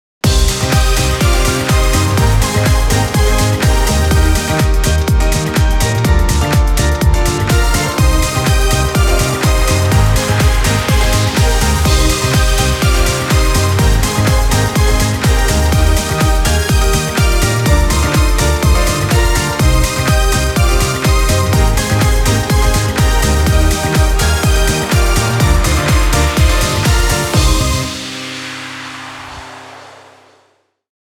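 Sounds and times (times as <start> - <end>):
instrumental music: 0.2 - 28.9.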